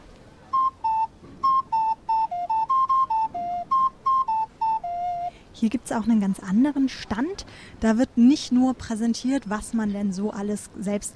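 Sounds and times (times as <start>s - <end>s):
small cuckoo flute playing cuckoo call: 0.4s - 5.5s
speech: 5.6s - 11.1s.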